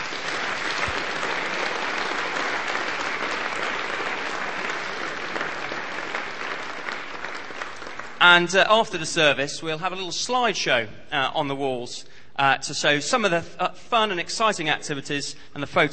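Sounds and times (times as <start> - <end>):
audience applause: 0.0 - 8.2
speech: 8.3 - 15.9.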